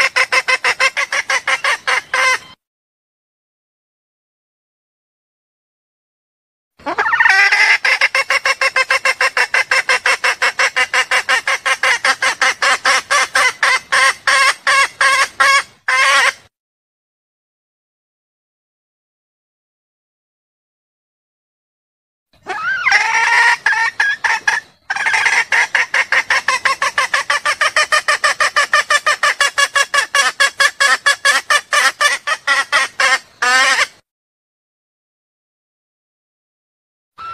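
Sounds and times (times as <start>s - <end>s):
junglefowl clucking: 0.0s - 2.5s, 6.8s - 16.4s, 22.4s - 34.0s.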